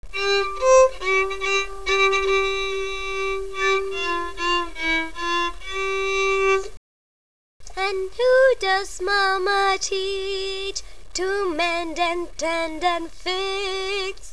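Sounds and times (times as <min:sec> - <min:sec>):
violin: 0:00.0 - 0:06.8
voice: 0:07.7 - 0:14.3.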